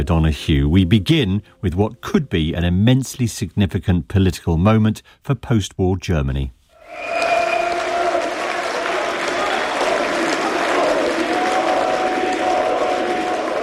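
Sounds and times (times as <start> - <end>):
speech: 0.0 - 7.2
supporters of the far-right AfD cheering an election victory: 6.8 - 13.6.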